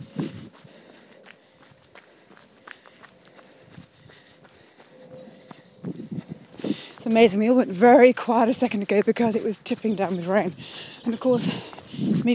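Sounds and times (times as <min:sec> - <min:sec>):
running footsteps on a forest trail: 0:00.0 - 0:12.3
faint bird chirps: 0:04.7 - 0:06.4
speech: 0:07.1 - 0:12.3.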